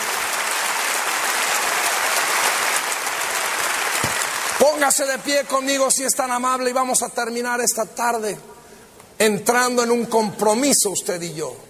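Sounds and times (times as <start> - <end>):
audience applause: 0.0 - 5.1
speech: 4.6 - 8.6, 9.2 - 11.6.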